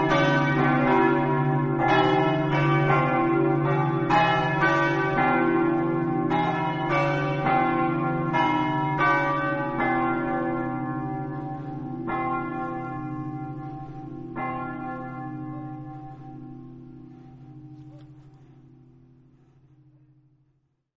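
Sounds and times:
bells ringing in Enemonzo: 0.0 - 20.4.

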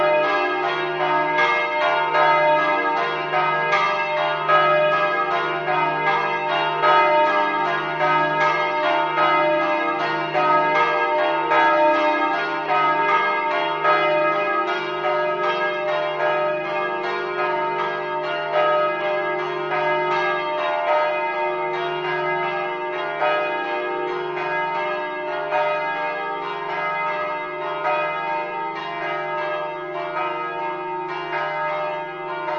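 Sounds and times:
bells tolling a death knell: 0.0 - 32.5.

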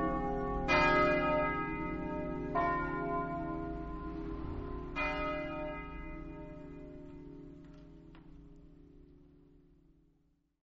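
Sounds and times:
bells ringing: 0.0 - 7.8.

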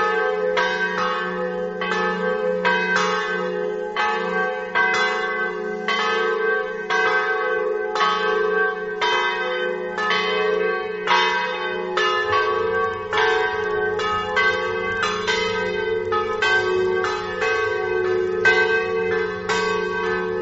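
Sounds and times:
bells ringing in Martignacco: 0.0 - 20.4.

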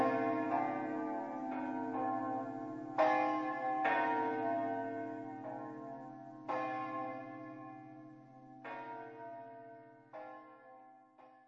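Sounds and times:
bells in Pozzuolo: 0.0 - 8.0.

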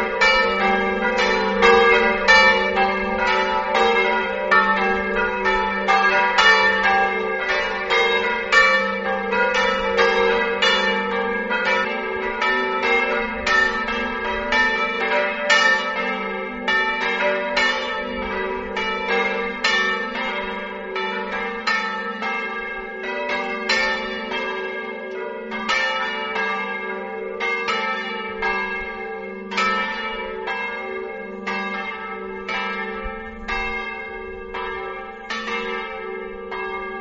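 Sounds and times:
bells ringing: 0.0 - 36.9.

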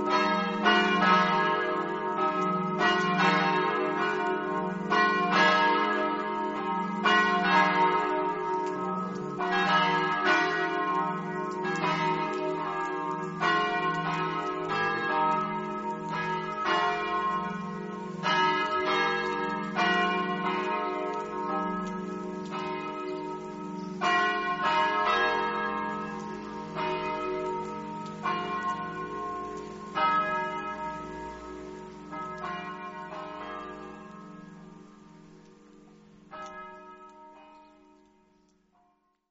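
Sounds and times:
bells ringing: 0.0 - 34.8.

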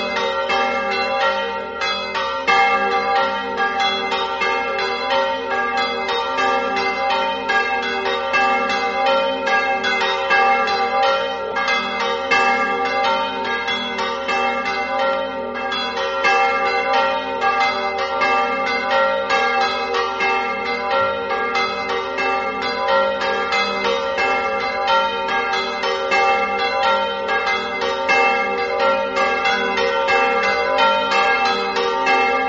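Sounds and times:
church bells in Chiasiellis: 0.0 - 32.4.

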